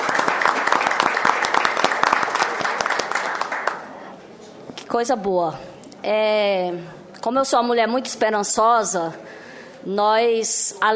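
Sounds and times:
round of applause: 0:00.0 - 0:04.0
speech: 0:04.9 - 0:10.9.

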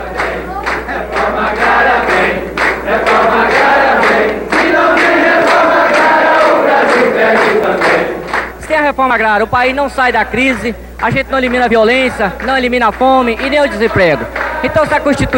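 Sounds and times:
rural workers' crowd singing: 0:00.0 - 0:08.6, 0:12.1 - 0:15.3
rural workers' crowd clapping: 0:00.0 - 0:08.8, 0:10.3 - 0:15.3
speech: 0:08.9 - 0:15.3.

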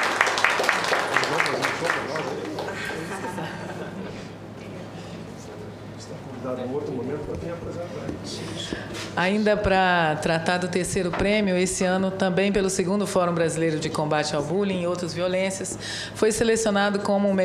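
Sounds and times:
audience applause: 0:00.0 - 0:03.2
laughter: 0:00.8 - 0:04.4
speech: 0:06.4 - 0:17.4.

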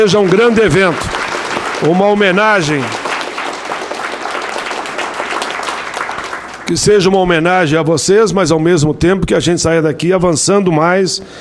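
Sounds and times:
speech: 0:00.0 - 0:01.2, 0:01.8 - 0:03.0, 0:06.7 - 0:11.4
audience applause: 0:00.0 - 0:07.0.

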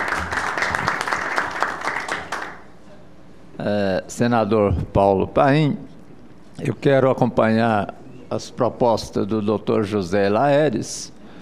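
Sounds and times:
group applauding: 0:00.0 - 0:02.8
speech: 0:03.6 - 0:05.9, 0:06.6 - 0:11.2.

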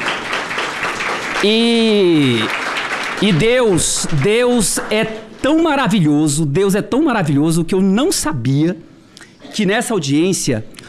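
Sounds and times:
crowd applauding in a large indoor hall: 0:00.0 - 0:05.7
speech: 0:01.4 - 0:02.6, 0:03.2 - 0:08.9, 0:09.5 - 0:10.8.

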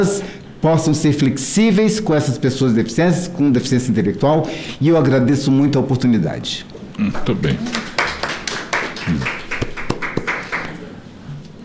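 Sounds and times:
speech: 0:00.0 - 0:07.9, 0:09.1 - 0:09.4
audience applause: 0:07.6 - 0:10.8
low voice: 0:09.0 - 0:09.4.

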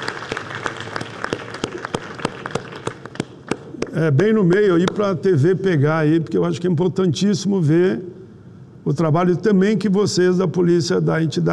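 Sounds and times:
audience applause: 0:00.0 - 0:03.6
speech: 0:04.0 - 0:08.1, 0:08.8 - 0:11.5.

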